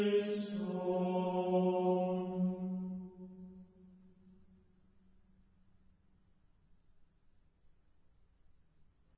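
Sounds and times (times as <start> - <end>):
Gregorian chant: 0.0 - 4.0.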